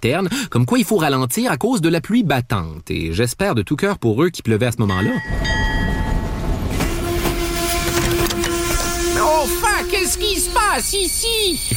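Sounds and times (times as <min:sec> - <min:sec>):
speech: 0:00.0 - 0:05.9, 0:09.4 - 0:11.7
old steam locomotive passing: 0:05.5 - 0:11.7.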